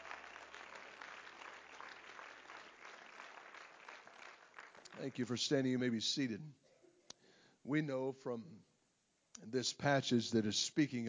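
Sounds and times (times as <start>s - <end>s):
people clapping hands: 0.0s - 5.3s
speech: 5.0s - 6.6s, 7.6s - 8.7s, 9.4s - 11.0s.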